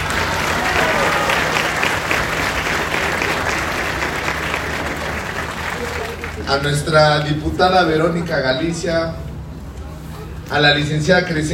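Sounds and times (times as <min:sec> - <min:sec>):
audience applause: 0:00.0 - 0:07.0
speech: 0:06.5 - 0:09.2, 0:10.5 - 0:11.5.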